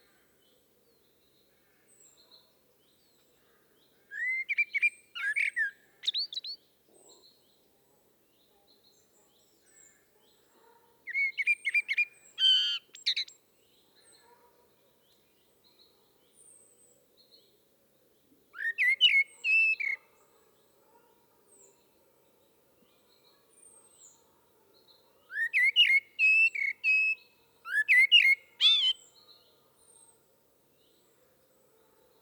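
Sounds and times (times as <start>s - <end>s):
common blackbird singing: 4.1s - 7.2s, 11.1s - 13.4s, 18.6s - 20.0s, 25.3s - 29.4s.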